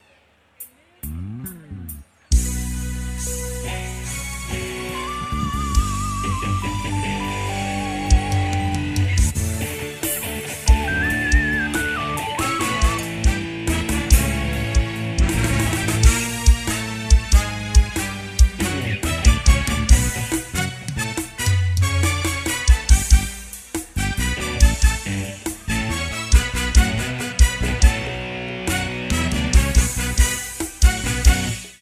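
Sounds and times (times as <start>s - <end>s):
opening music: 1.2s - 31.7s.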